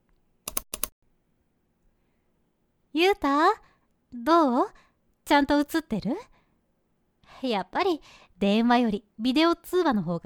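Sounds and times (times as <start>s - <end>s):
clicks on a computer: 0.4s - 0.9s
speech: 3.0s - 6.3s, 7.4s - 10.2s.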